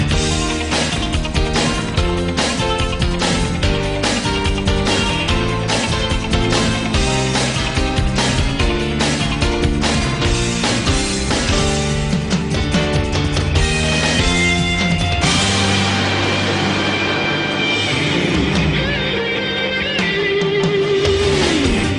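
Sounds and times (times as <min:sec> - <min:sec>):
instrumental intro theme music: 0:00.0 - 0:21.9.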